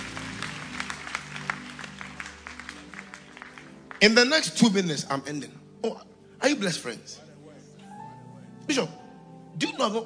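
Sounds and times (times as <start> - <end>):
audience clapping hands: 0.0 - 4.8
speech: 4.0 - 7.3, 8.7 - 9.0, 9.6 - 10.0.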